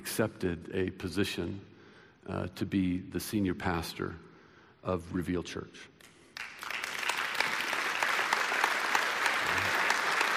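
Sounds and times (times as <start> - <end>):
speech: 0.0 - 1.7, 2.3 - 5.9
audience applauding: 6.4 - 10.3.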